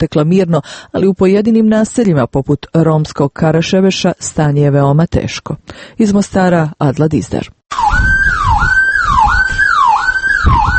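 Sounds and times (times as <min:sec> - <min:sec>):
speech: 0:00.0 - 0:07.8
building alarms sounding during power outage: 0:07.7 - 0:10.7.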